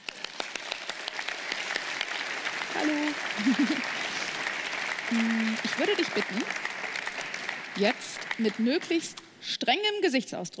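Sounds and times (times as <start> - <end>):
small audience applause for a volunteer called up to the stage: 0.0 - 9.2
speech: 2.8 - 4.0, 5.1 - 6.7, 7.8 - 10.5
laughter: 2.8 - 4.4.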